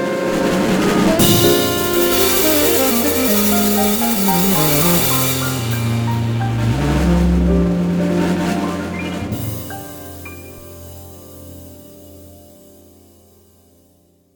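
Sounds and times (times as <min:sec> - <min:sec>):
saxophone: 0:00.0 - 0:09.6.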